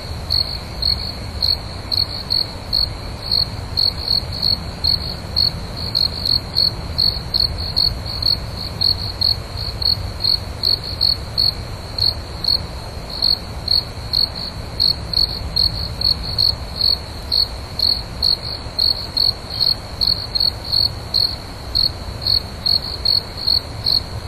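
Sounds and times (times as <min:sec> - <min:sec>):
cricket chirping: 0:00.0 - 0:24.2.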